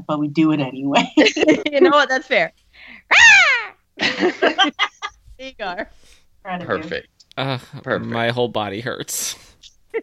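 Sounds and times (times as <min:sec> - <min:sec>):
speech: 0:00.0 - 0:03.2, 0:04.0 - 0:10.0
laughter: 0:01.0 - 0:02.3, 0:04.0 - 0:05.2
voice imitating a hawk screech: 0:03.1 - 0:03.8.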